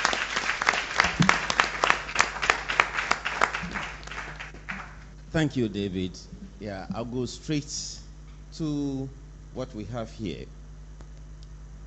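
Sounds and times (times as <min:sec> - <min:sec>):
audience round of applause: 0:00.0 - 0:05.1
speech: 0:05.4 - 0:10.6.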